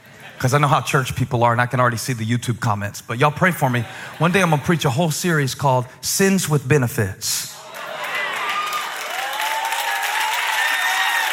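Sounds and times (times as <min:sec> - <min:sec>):
speech: 0:00.4 - 0:07.6
laughter: 0:03.2 - 0:05.0
church audience clapping: 0:07.6 - 0:11.3.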